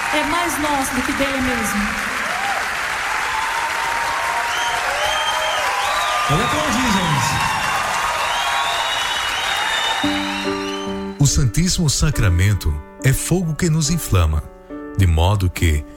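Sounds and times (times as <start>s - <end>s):
audience applause: 0.0s - 11.2s
speech: 0.1s - 2.1s, 6.3s - 7.6s, 10.0s - 10.6s, 11.2s - 15.9s.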